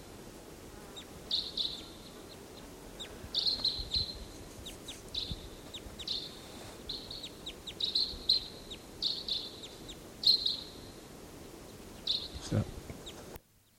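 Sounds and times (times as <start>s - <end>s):
wild crossbills giving chip calls: 1.0s - 11.0s, 11.6s - 13.4s.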